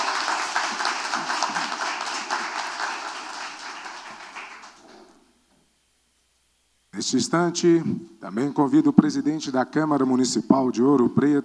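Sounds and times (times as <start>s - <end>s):
crowd applause: 0.0s - 5.2s
speech: 7.0s - 11.4s.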